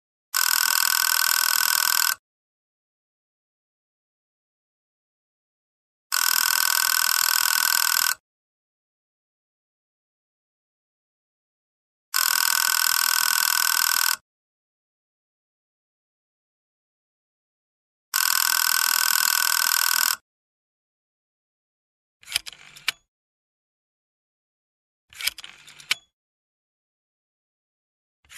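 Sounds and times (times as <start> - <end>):
old telephone ringing: 0.4 - 2.2, 6.1 - 8.2, 12.2 - 14.2, 18.2 - 20.2.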